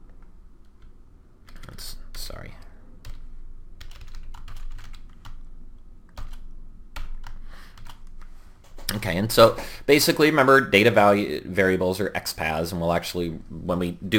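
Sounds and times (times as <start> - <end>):
typing on a computer keyboard while writing code: 0.7 - 2.0, 3.8 - 5.4, 6.1 - 9.0
speech: 9.0 - 14.1.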